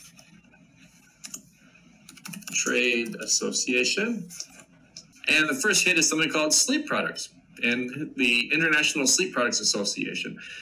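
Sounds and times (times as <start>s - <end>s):
computer keyboard typing a web search: 1.1s - 3.3s
speech: 2.6s - 4.4s, 5.3s - 10.6s.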